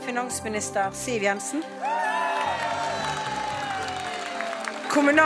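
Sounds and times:
speech: 0:00.2 - 0:02.0, 0:05.0 - 0:05.2
crowd cheering outdoors on Slottsplassen: 0:01.6 - 0:05.2.

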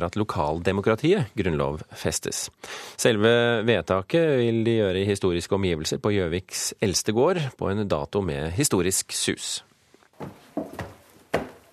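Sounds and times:
speech: 0:00.0 - 0:10.9
footsteps walking up stairs at Hund gård: 0:10.2 - 0:11.7.

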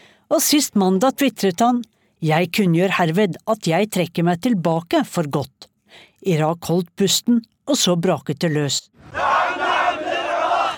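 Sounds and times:
speech: 0:00.3 - 0:09.4
crowd of protesters shouting in streets: 0:09.0 - 0:10.7.

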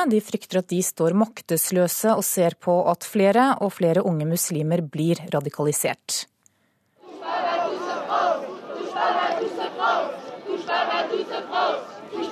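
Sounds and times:
speech: 0:00.0 - 0:06.3
crowd chanting slogan rhythmically on Place de la République in Paris: 0:07.0 - 0:12.3.

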